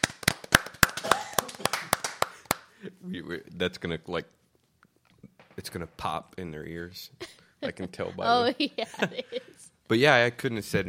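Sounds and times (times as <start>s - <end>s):
round of applause: 0.0s - 2.7s
speech: 3.0s - 4.4s, 5.6s - 10.8s
laughter: 7.3s - 9.7s.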